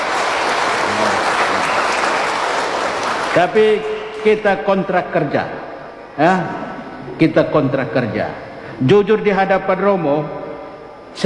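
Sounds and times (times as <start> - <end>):
crowd applause: 0.0 - 4.3
speech: 3.4 - 6.6, 7.2 - 10.4.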